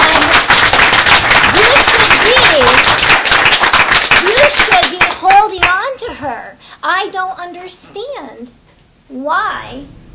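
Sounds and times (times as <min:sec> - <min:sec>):
audience applause at a school board meeting: 0:00.0 - 0:05.4
speech: 0:09.1 - 0:10.0.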